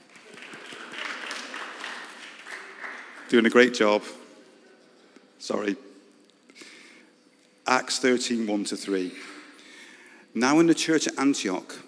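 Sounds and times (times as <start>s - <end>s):
audience applause for the people on the sound desk: 0.0s - 3.7s
speech: 3.3s - 4.2s, 5.5s - 5.9s, 7.7s - 9.3s, 10.3s - 11.8s.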